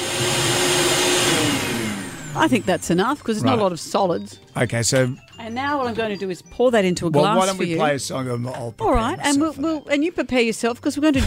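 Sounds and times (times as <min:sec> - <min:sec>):
blender blitzing bran drink: 0:00.0 - 0:03.6
speech: 0:02.4 - 0:11.2.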